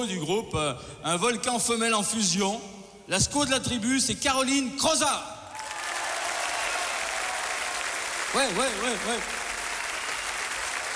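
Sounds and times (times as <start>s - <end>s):
speech: 0.0s - 5.4s, 8.3s - 9.4s
audience applause: 5.6s - 10.9s.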